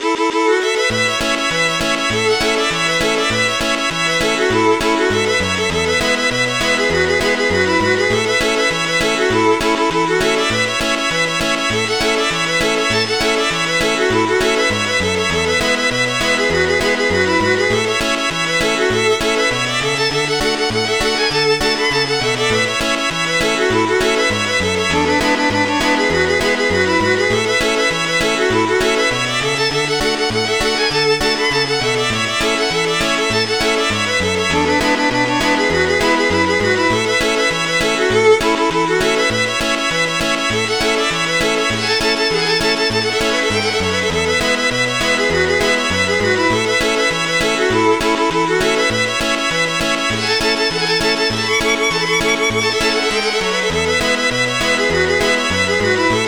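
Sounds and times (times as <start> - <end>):
Cajun oldies music: 0.0 - 56.2.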